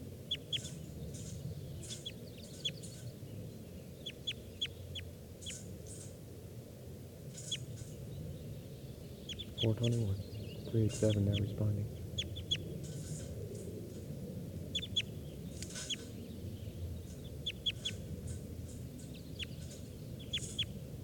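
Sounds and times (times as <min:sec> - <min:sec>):
bird calling: 0:00.3 - 0:03.2, 0:03.9 - 0:06.1, 0:07.4 - 0:08.0, 0:09.2 - 0:13.9, 0:14.6 - 0:20.8
speech: 0:09.7 - 0:12.0.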